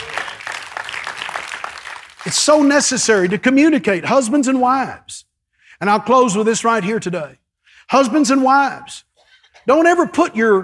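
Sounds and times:
audience clapping hands: 0.0 - 4.8
speech: 2.2 - 10.6.

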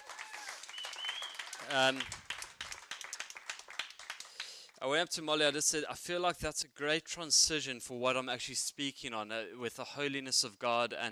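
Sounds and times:
loud voiced cheer: 0.0 - 2.1
crowd clapping: 0.0 - 4.8
speech: 1.6 - 2.2, 4.8 - 11.1.

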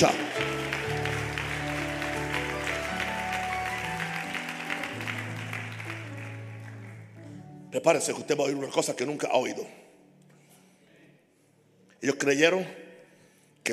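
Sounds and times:
speech: 0.0 - 0.5, 7.8 - 9.8, 12.0 - 12.8
loud audience applause: 0.0 - 7.2.

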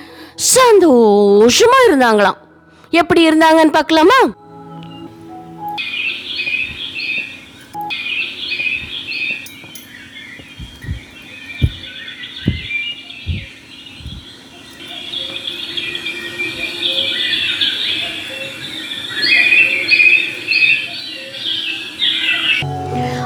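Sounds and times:
many birds chirping in an outdoor chorus: 0.0 - 23.2
speech: 0.4 - 4.4
soft low thumps: 10.4 - 14.3.

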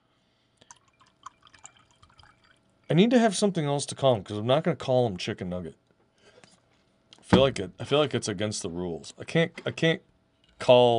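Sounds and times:
drink being poured: 0.6 - 2.9
speech: 2.9 - 5.8, 7.3 - 10.9.

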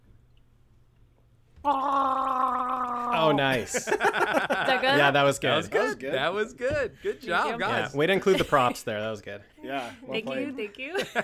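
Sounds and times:
speech: 1.6 - 2.0, 3.2 - 11.2
voice making Wookiee-style roar while gargling water: 1.6 - 3.5
laughter: 2.9 - 6.1, 6.8 - 9.0, 10.9 - 11.2.

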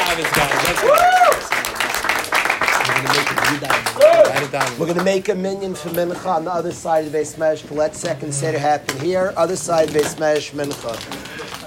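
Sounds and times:
crowd clapping: 0.0 - 6.0, 9.6 - 11.6
speech: 0.2 - 1.0, 4.5 - 11.2.

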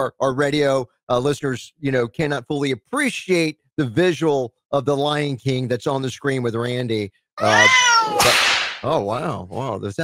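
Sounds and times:
speech: 0.0 - 10.0
cat meowing: 7.4 - 8.3.

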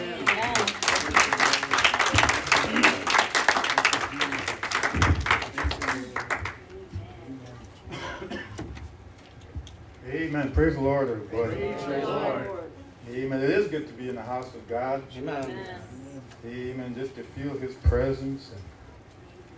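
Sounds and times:
audience hand clapping: 0.0 - 6.8
speech: 10.5 - 12.6, 13.2 - 18.7.

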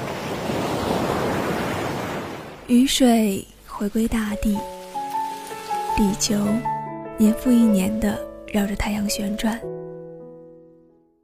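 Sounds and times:
ocean waves rising and falling: 0.0 - 8.0
speech: 2.7 - 4.7, 6.0 - 9.8.

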